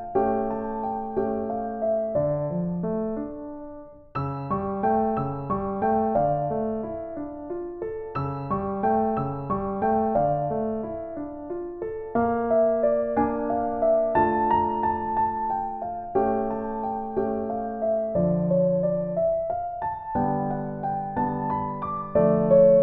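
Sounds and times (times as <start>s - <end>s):
solo piano etude: 0.0s - 22.8s.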